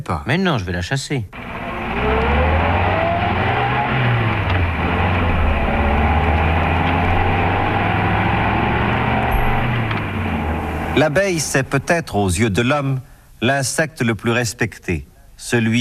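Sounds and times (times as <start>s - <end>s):
speech: 0.0s - 1.5s, 11.0s - 15.7s
car engine humming as the vehicle slows: 1.4s - 13.3s.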